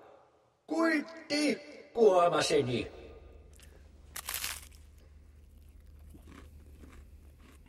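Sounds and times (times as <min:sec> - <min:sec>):
speech: 0:01.0 - 0:03.0
low steady hum: 0:02.8 - 0:07.6
biting and chewing crunchy food: 0:03.5 - 0:07.6.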